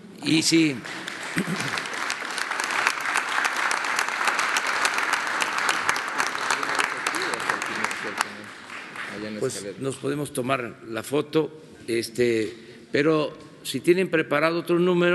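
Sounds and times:
speech: 0.2 - 1.9, 9.3 - 15.1
audience applause: 0.5 - 9.6.

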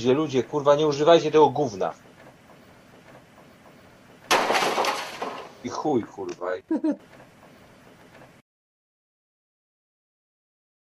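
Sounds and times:
speech: 0.0 - 2.1, 5.6 - 7.2
rattling and clattering: 1.9 - 5.8
hammer blow smashing a printer: 4.3 - 5.7.

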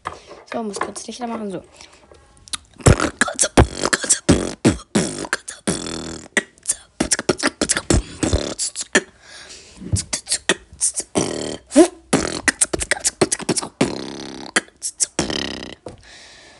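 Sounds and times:
speech: 0.5 - 2.1
person beatboxing: 2.5 - 9.2, 9.8 - 15.9.

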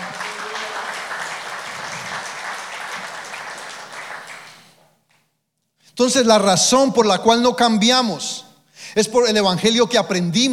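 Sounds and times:
audience applause: 0.0 - 4.8
speech: 6.0 - 8.4, 9.0 - 10.5.

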